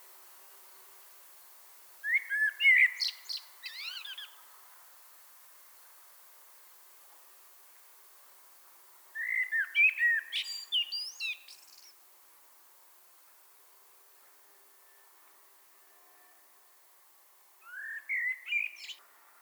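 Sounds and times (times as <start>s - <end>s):
Common blackbird singing: 2.0s - 4.4s, 9.2s - 11.9s, 17.6s - 19.0s.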